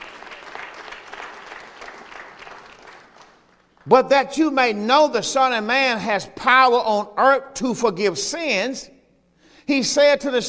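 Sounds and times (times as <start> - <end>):
audience clapping: 0.0 - 4.0
speech: 3.8 - 8.9, 9.7 - 10.4.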